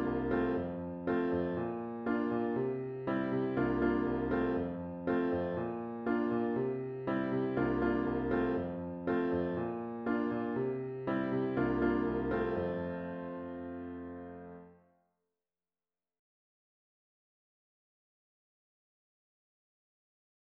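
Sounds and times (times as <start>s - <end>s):
piano audio playback: 0.0s - 14.8s.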